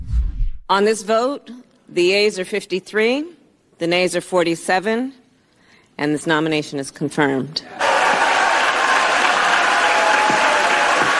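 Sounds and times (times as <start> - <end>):
speech: 0.7 - 5.2, 6.0 - 7.8
crowd applause and cheering in senate chamber: 7.8 - 11.1.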